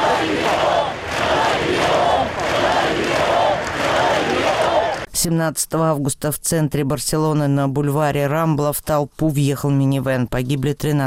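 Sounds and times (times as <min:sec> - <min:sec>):
large crowd chanting a slogan in unison: 0:00.0 - 0:05.1
speech: 0:05.2 - 0:11.0.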